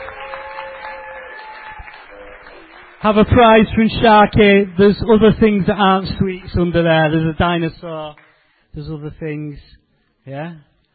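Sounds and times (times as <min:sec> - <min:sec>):
audience applause: 0:00.0 - 0:05.6
speech: 0:03.0 - 0:10.7.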